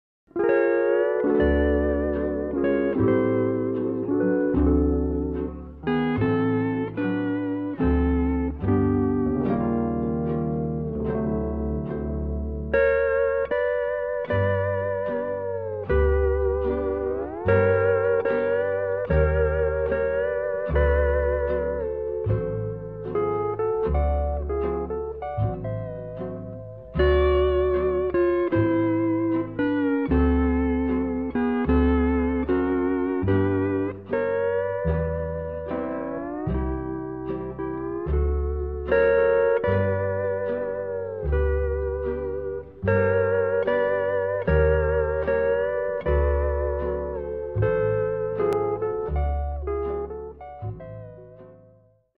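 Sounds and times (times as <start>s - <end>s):
instrumental music: 0.3s - 52.1s.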